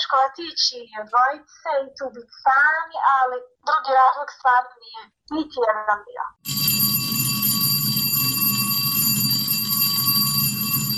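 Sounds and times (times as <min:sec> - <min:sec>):
speech: 0:00.1 - 0:06.8
school bell ringing: 0:06.4 - 0:10.9.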